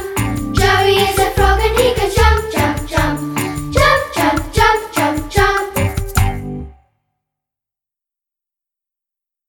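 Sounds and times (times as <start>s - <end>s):
vocals: 0.0s - 6.1s.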